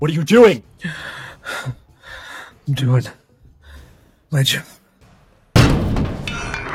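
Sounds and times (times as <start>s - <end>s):
speech: 0.0s - 1.8s, 2.7s - 3.2s, 4.3s - 4.8s
door slamming shut: 5.6s - 6.7s.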